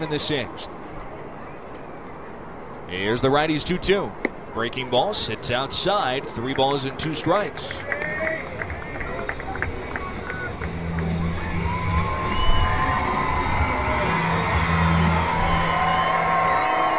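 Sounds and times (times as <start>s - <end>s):
speech: 0.0s - 0.8s, 2.9s - 8.4s
baseball crowd cheering for batter Freeman: 5.5s - 16.9s
scattered whoops: 11.4s - 16.9s.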